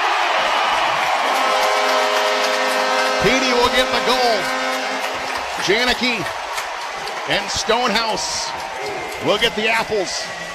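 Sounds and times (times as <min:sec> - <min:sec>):
arena crowd at the Coliseum cheering a hockey goal: 0:00.0 - 0:10.5
speech: 0:03.2 - 0:04.6, 0:05.6 - 0:06.4, 0:07.2 - 0:10.4.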